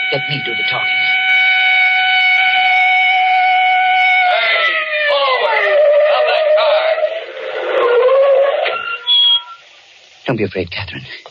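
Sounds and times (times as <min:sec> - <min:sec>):
police car siren wailing: 0:00.0 - 0:09.0
speech: 0:00.1 - 0:01.2, 0:10.3 - 0:11.2.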